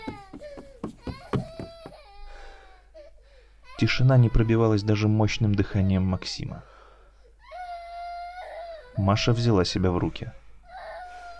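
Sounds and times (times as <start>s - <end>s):
girl sobbing: 0.0s - 4.3s, 7.3s - 9.0s, 10.7s - 11.3s
speech: 3.8s - 6.7s, 9.0s - 10.4s.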